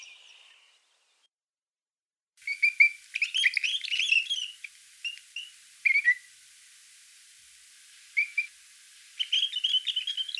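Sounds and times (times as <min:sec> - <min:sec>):
pine grosbeak calling with whistled notes: 0:02.5 - 0:10.3.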